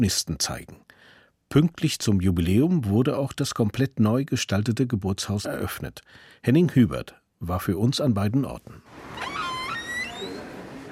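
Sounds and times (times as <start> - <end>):
speech: 0.0 - 0.9, 1.5 - 9.4
squeaking door in old house: 8.8 - 10.9.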